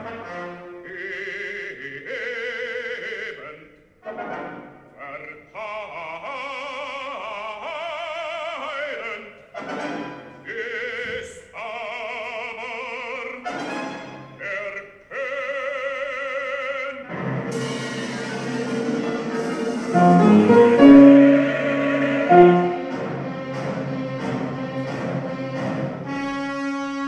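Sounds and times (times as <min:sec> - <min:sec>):
full ensemble playing: 0:17.1 - 0:27.0.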